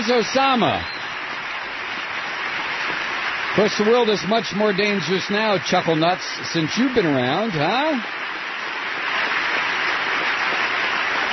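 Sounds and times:
speech: 0.0 - 1.0, 3.6 - 8.2
audience applause: 0.0 - 11.3.

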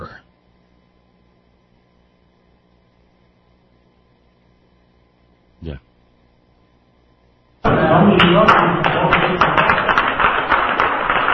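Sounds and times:
audience applause: 7.7 - 11.3.

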